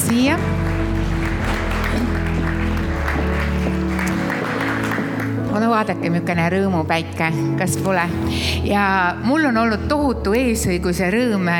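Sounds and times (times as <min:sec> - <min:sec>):
audience applause: 0:00.0 - 0:05.5
speech: 0:00.1 - 0:00.7, 0:05.6 - 0:11.5.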